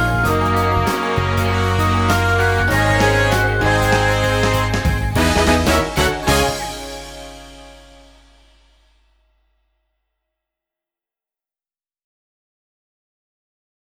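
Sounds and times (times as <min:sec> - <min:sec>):
instrumental music: 0:00.0 - 0:08.9.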